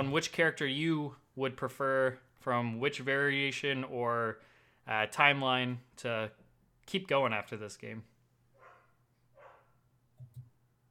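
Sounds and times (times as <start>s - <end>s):
speech: 0.0s - 8.1s
dog barking in the background: 8.6s - 9.8s.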